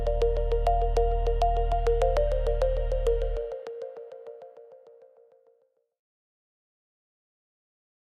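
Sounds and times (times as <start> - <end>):
motivational corporate music: 0.0 - 4.8.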